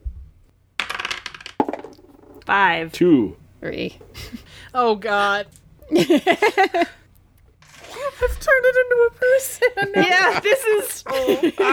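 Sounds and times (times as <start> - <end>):
dice rattling and clattering for a tabletop game roll-off: 0.8 - 2.4
speech: 2.5 - 7.0, 8.2 - 11.7
laughter: 4.1 - 4.7, 5.8 - 7.1, 9.2 - 11.7.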